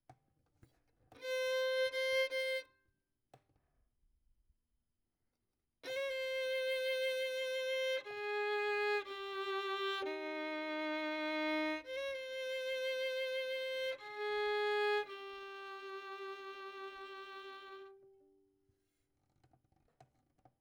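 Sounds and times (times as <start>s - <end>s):
violin: 1.1s - 2.7s, 5.8s - 18.4s.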